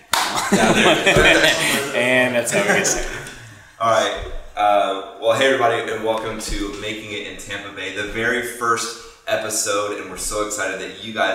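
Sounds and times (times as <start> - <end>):
hands clapping: 0.0 - 1.9, 2.8 - 3.5
laughter: 0.2 - 3.6
speech: 0.5 - 11.3.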